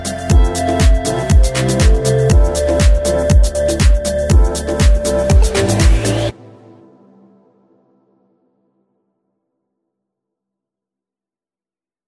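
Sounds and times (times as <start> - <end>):
upbeat electro fashion music intro: 0.0 - 7.8.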